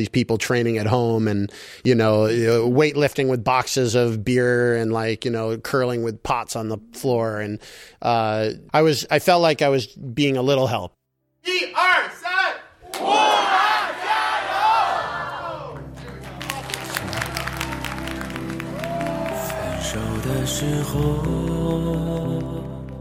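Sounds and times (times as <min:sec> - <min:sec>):
speech: 0:00.0 - 0:12.2, 0:20.4 - 0:22.5
crowd chanting: 0:12.8 - 0:17.3, 0:18.4 - 0:21.4.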